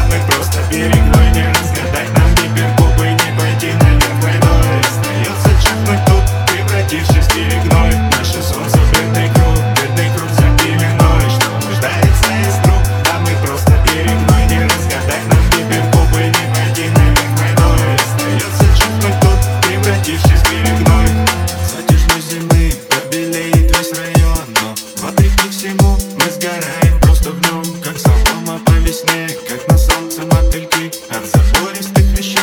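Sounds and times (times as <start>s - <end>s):
drum and bass beats remix: 0.0s - 32.4s.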